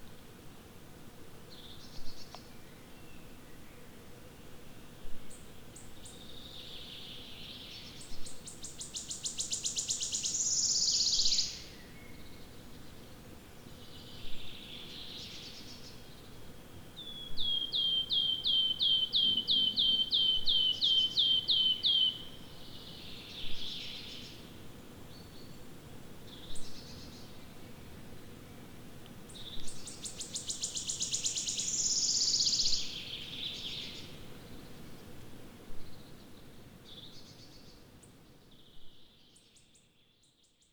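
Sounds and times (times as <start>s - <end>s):
wood warbler singing: 8.5s - 11.7s, 17.0s - 24.2s, 29.4s - 34.0s.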